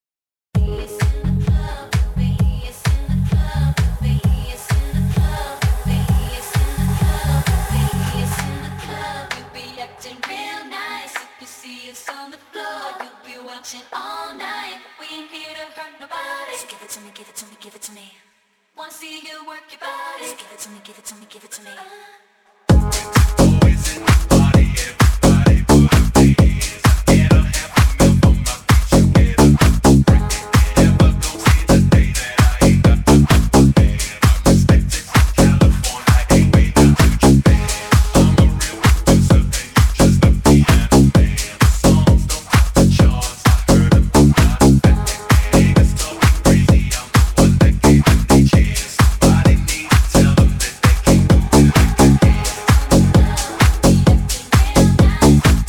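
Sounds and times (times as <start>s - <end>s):
pancadao funk beat: 0.6s - 8.6s, 22.7s - 55.6s.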